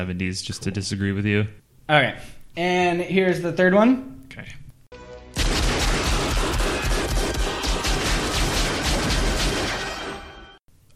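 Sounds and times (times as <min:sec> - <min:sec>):
speech: 0:00.0 - 0:04.6
gunfire barrage from a film scene: 0:05.4 - 0:10.6.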